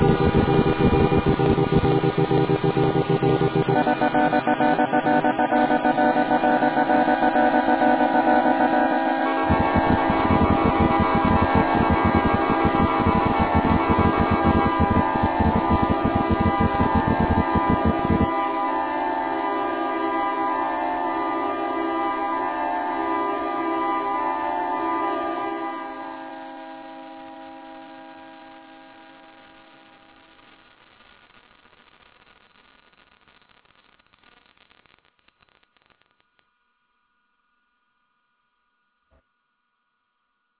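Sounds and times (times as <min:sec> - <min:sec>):
horn melody: 0:00.0 - 0:28.8.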